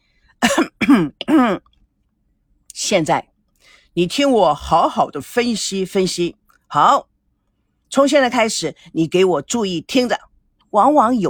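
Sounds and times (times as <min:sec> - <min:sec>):
fake coughing: 0:00.4 - 0:01.7
speech: 0:00.6 - 0:01.7, 0:02.8 - 0:07.1, 0:07.9 - 0:11.2.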